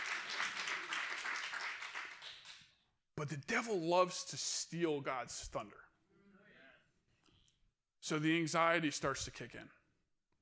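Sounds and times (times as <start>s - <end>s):
audience clapping: 0.0s - 2.8s
speech: 3.2s - 5.9s, 8.1s - 9.8s.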